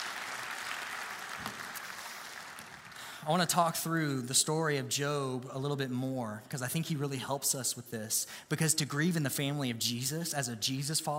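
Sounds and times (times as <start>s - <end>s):
audience applause: 0.0s - 3.2s
speech: 3.2s - 11.1s.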